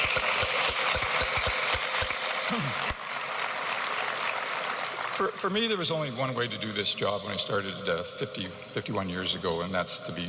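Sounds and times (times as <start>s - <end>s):
audience applause: 0.0s - 5.9s
speech: 5.2s - 10.2s.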